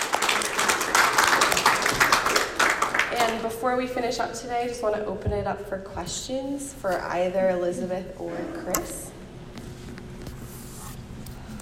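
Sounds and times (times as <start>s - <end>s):
crowd applauding: 0.0s - 3.4s
speech: 3.3s - 9.1s.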